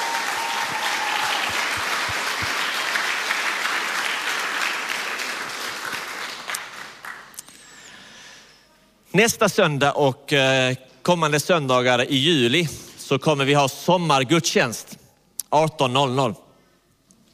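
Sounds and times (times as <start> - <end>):
audience applause: 0.0 - 7.4
speech: 9.2 - 16.4.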